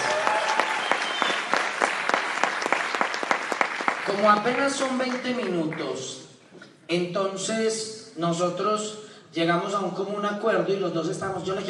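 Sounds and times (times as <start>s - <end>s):
audience applause: 0.0s - 5.8s
speech: 4.1s - 6.2s, 6.9s - 11.6s.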